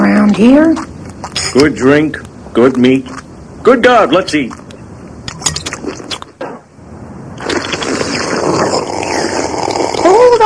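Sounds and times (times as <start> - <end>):
speech: 0.4 - 0.9, 1.5 - 4.6
loud wet slurping of soup: 7.4 - 10.4.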